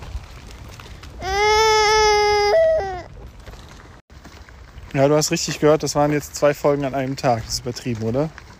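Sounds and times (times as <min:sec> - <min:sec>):
small child grumbling and whining: 0:01.2 - 0:03.2
speech: 0:05.0 - 0:08.4.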